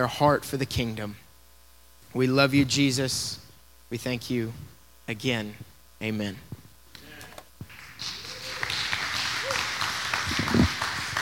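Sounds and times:
speech: 0.0s - 1.2s, 2.1s - 6.6s
audience clapping: 6.9s - 11.2s.

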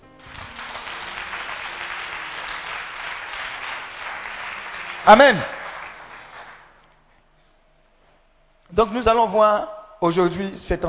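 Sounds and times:
church congregation applauding during a service: 0.0s - 6.9s
speech: 5.0s - 5.6s, 8.8s - 10.8s.

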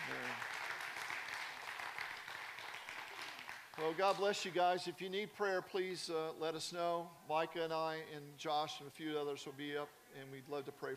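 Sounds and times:
audience clapping: 0.0s - 4.4s
speech: 3.8s - 10.9s.

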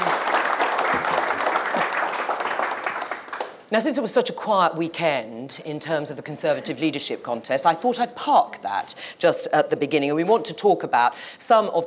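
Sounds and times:
audience round of applause: 0.0s - 3.6s
speech: 3.7s - 11.8s.

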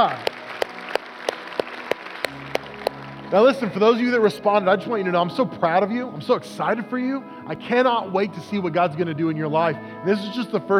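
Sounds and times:
speech: 0.0s - 0.3s, 3.3s - 10.7s
audience applause: 0.0s - 3.9s.

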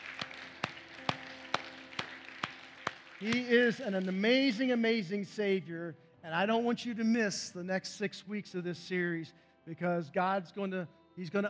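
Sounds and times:
audience applause: 0.0s - 4.7s
speech: 3.2s - 11.4s.

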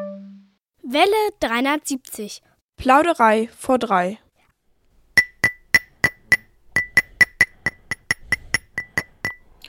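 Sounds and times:
speech: 0.9s - 4.2s
mobile phone tapping on a ceramic coffee cup: 5.2s - 9.4s.

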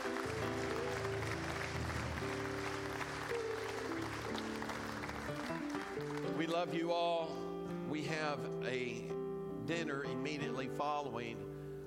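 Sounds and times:
audience clapping: 0.0s - 6.8s
speech: 6.4s - 9.1s, 9.7s - 11.5s.

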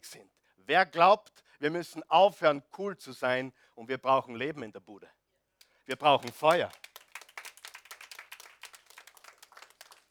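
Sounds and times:
speech: 0.1s - 5.2s, 5.9s - 6.8s
audience applause: 5.9s - 10.1s.

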